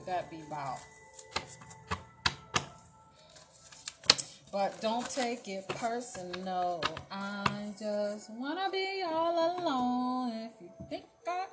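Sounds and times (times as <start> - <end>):
speech: 0.1 - 1.8, 4.0 - 11.5
oracle jar cards being shuffled: 0.8 - 7.8.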